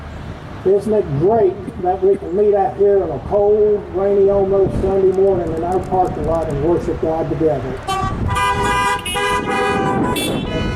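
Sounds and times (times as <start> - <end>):
speech: 0.6 - 8.3
car horns honking: 7.8 - 10.7.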